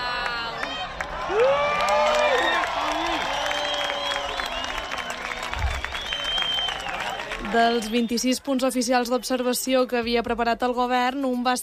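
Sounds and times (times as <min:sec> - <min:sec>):
spontaneous cheering and applause at eclipse in Cala Blanca Menorca: 0:00.0 - 0:08.3
speech: 0:07.5 - 0:11.6.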